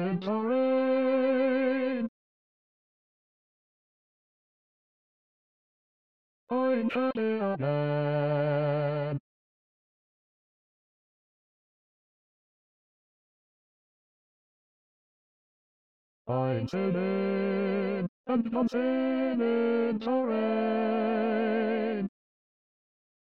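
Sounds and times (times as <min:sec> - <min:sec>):
bass voice singing in SATB choral arrangement: 0:00.0 - 0:02.1, 0:06.5 - 0:09.2, 0:16.3 - 0:22.1.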